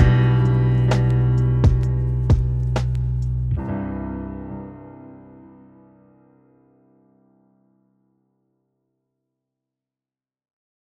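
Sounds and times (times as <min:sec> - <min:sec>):
lofi music: 0:00.0 - 0:04.9.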